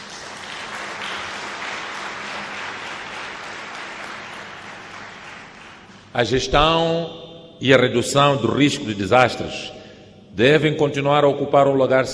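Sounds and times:
audience applause: 0.0s - 6.1s
speech: 6.2s - 9.8s, 10.4s - 12.1s.

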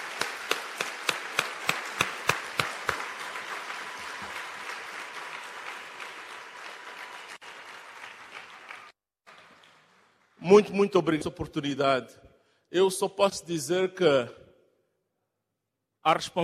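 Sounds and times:
audience applause: 0.0s - 10.4s
speech: 10.5s - 14.4s, 16.0s - 16.4s.

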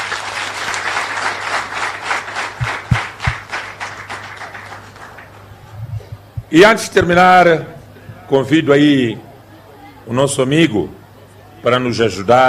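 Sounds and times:
audience applause: 0.0s - 5.7s
speech: 6.5s - 9.3s, 10.1s - 11.0s, 11.6s - 12.4s.

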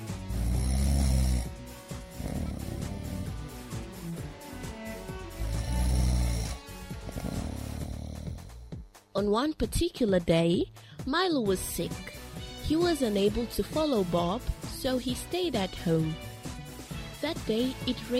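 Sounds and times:
snoring: 0.0s - 8.8s
speech: 9.2s - 12.1s, 12.7s - 16.3s, 17.2s - 18.1s.

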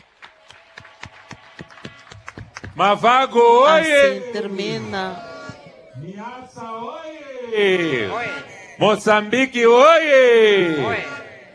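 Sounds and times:
quiet audience applause: 0.0s - 3.0s
speech: 2.8s - 5.3s, 6.0s - 11.5s.

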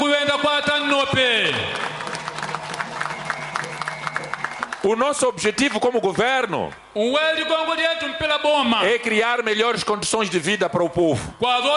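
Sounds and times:
sharp claps: 0.7s - 6.9s
audience applause: 0.8s - 6.8s
speech: 4.9s - 11.7s.

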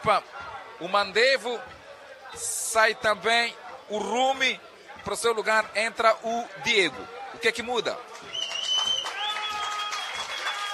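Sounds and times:
speech: 0.0s - 8.1s
stadium football crowd applauding a substitute player: 7.6s - 10.7s.

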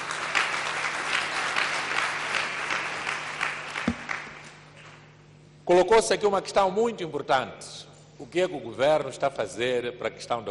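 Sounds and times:
applause: 0.0s - 4.6s
speech: 5.7s - 10.4s.

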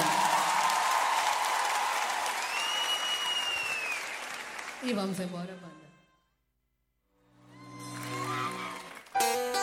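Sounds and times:
audience applause for the band: 0.0s - 5.2s, 7.7s - 9.5s
faint whistle over the crowd: 2.4s - 4.1s
speech: 4.8s - 5.8s.

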